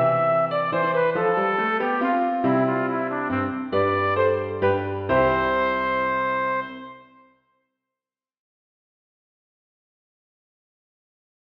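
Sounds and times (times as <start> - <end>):
piano: 0.0 - 7.5
trumpet playing a minuet: 0.0 - 7.5.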